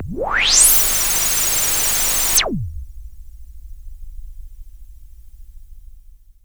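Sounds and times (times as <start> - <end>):
synth effects: 0.0 - 2.8.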